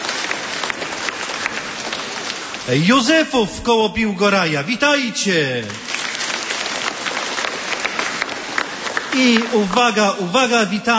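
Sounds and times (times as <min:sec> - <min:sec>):
applause for a visiting parish group at a church gathering at a sanctuary: 0:00.0 - 0:02.8, 0:05.3 - 0:10.9
speech: 0:02.7 - 0:05.9, 0:09.2 - 0:10.9.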